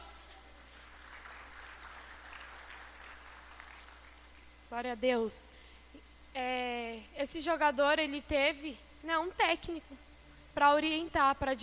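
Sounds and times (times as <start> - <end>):
audience applauding: 0.8 - 4.4
speech: 4.7 - 5.6, 6.4 - 11.6.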